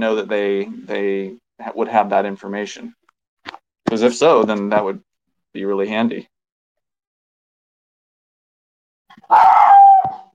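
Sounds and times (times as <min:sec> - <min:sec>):
speech: 0:00.0 - 0:03.0, 0:03.9 - 0:06.3, 0:09.2 - 0:09.5
dog barking: 0:09.3 - 0:10.3.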